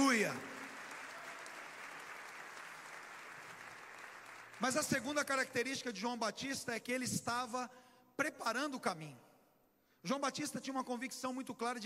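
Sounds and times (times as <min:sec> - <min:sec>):
audience applause: 0:00.0 - 0:04.8
speech: 0:00.2 - 0:00.5, 0:04.6 - 0:09.3, 0:10.0 - 0:11.8.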